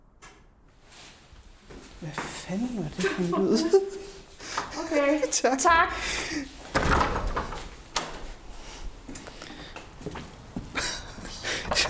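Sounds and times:
speech: 2.0 - 4.1, 4.8 - 6.8
door opened quickly: 6.7 - 8.4.

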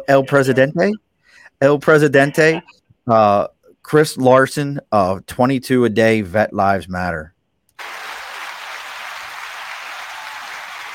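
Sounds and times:
speech: 0.1 - 8.0
audience applause: 7.8 - 10.9.

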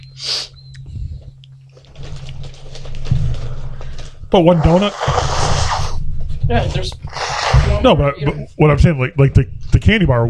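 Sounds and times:
person blowing nose: 0.2 - 0.6, 4.6 - 6.0, 7.1 - 7.8
speech: 4.3 - 5.3, 6.5 - 10.2.

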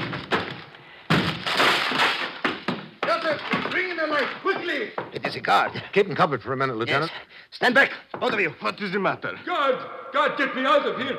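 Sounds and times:
door being broken down: 0.0 - 3.9
speech: 4.2 - 11.1.

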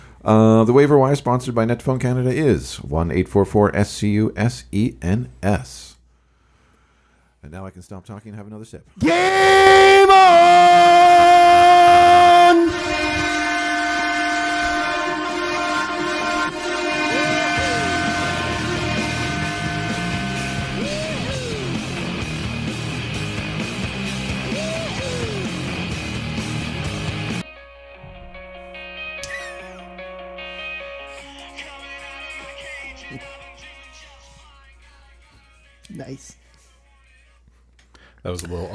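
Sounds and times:
speech: 0.2 - 5.9, 7.4 - 11.0, 38.2 - 38.7
hockey goal horn: 9.0 - 22.8, 28.0 - 33.8
upbeat goal music: 9.0 - 34.6.

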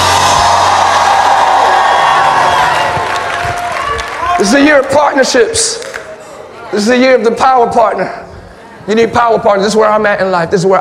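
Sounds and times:
large crowd screaming and cheering: 0.0 - 4.8
clapping: 2.6 - 4.4
speech: 4.4 - 5.8, 6.7 - 8.2, 8.8 - 10.7.

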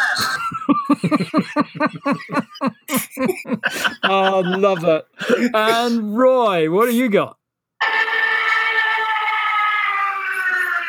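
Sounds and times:
laughter: 0.2 - 7.2
speech: 0.9 - 2.5, 4.2 - 7.4
Stuka dive-bomber siren wailing: 8.3 - 10.8.

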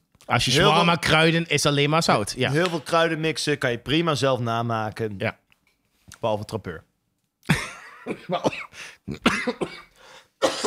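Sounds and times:
speech: 0.3 - 5.4, 6.2 - 6.9, 8.0 - 10.6
cough: 7.5 - 10.6.

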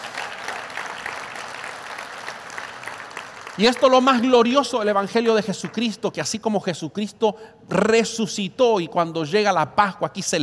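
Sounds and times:
audience applause: 0.0 - 4.3
speech: 3.6 - 10.4.

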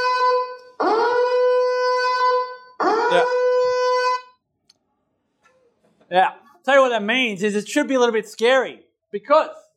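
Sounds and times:
fire alarm going off: 0.0 - 4.4
speech: 3.1 - 3.4, 6.1 - 9.6.

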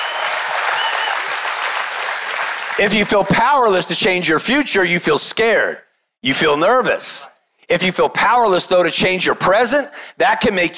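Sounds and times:
scattered cheers and shouts: 0.0 - 2.3
crowd applause: 0.0 - 2.8
speech: 2.8 - 10.7.

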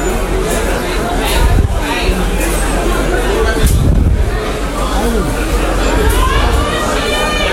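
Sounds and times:
crowd shouting and crying out in a store: 0.1 - 7.5.

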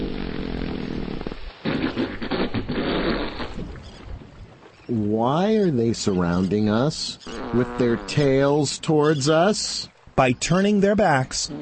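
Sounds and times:
humpback whales farting back and forth: 0.0 - 4.2, 7.2 - 8.6, 11.3 - 11.6
speech: 4.9 - 11.6.

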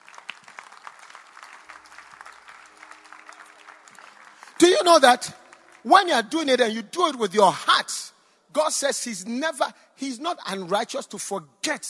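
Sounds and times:
audience clapping: 0.0 - 6.5
speech: 4.7 - 11.8.

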